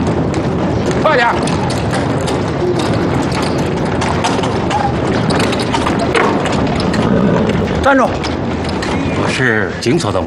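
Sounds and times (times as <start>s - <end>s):
horse-drawn carriage wheels and hooves clattering: 0.0s - 10.2s
speech: 1.2s - 1.6s, 7.9s - 8.5s, 9.4s - 10.2s.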